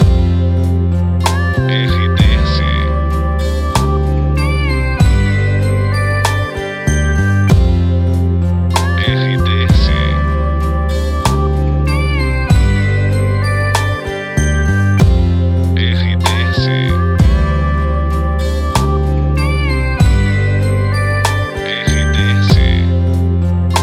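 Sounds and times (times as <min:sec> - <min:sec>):
background music for adult voice-over: 0:00.0 - 0:23.8.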